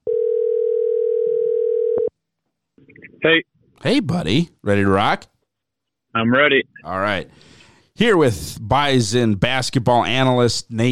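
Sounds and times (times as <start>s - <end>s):
telephone call connecting tone: 0.0s - 2.1s
speech: 3.2s - 5.3s, 6.1s - 10.9s.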